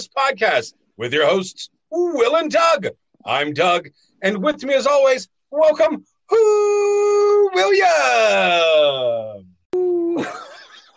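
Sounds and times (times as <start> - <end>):
speech: 0.0 - 9.5, 10.2 - 10.6
person imitating a howl: 6.3 - 10.3
breathy laugh-like burst: 10.2 - 10.9.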